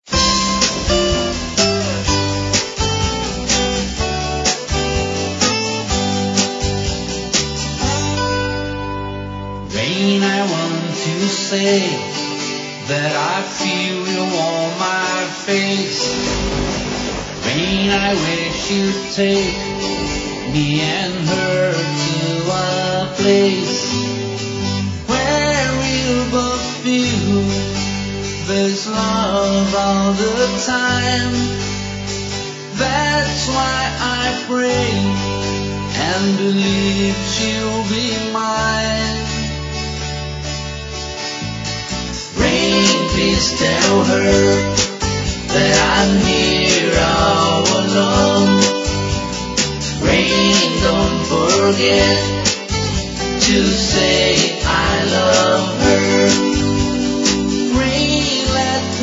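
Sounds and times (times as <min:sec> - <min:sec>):
acoustic song: 0:00.0 - 0:59.0.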